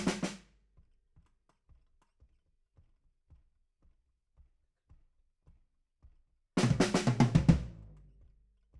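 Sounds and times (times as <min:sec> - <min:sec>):
bass drum: 0:06.6 - 0:08.4.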